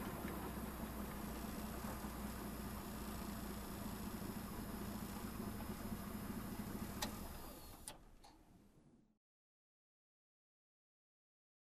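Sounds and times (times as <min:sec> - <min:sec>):
tank driving heard from inside: 0:00.0 - 0:08.7.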